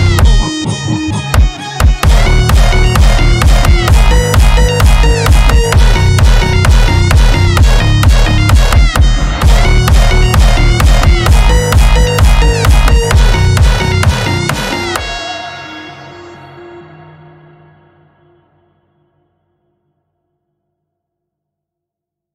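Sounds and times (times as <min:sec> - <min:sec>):
hardstyle phonk music: 0:00.0 - 0:17.2.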